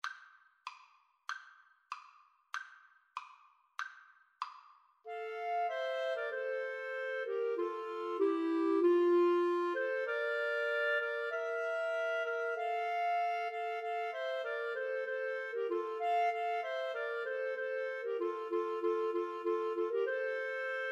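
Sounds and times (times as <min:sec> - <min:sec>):
clarinet trio: 0:05.1 - 0:20.9.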